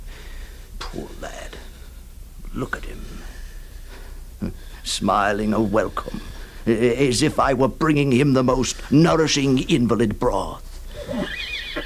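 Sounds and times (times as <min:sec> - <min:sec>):
speech: 0:00.9 - 0:01.5, 0:02.6 - 0:03.4, 0:04.4 - 0:11.3
horses neighing: 0:10.9 - 0:11.8
horse grunts: 0:11.0 - 0:11.8.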